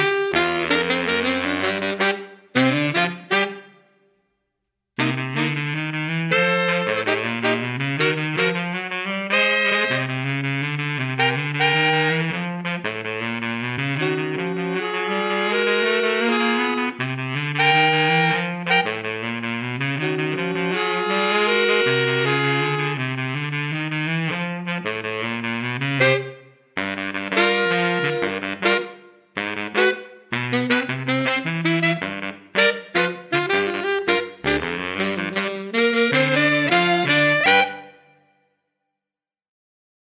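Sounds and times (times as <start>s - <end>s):
tenor playalong: 0.0s - 3.7s, 5.0s - 37.9s.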